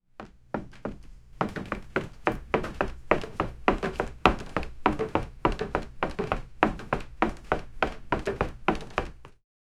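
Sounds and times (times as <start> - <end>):
bare feet running on wooden floor: 0.2 - 9.4.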